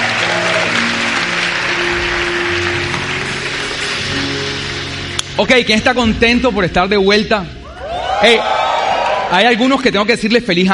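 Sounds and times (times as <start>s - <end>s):
audience applause: 0.0s - 5.1s, 7.7s - 9.4s
speech: 5.4s - 7.6s, 8.2s - 8.6s, 9.3s - 10.7s.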